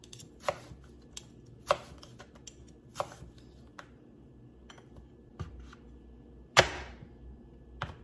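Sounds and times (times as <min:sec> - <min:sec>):
very sharp kitchen knife cutting through food: 0:00.0 - 0:03.4.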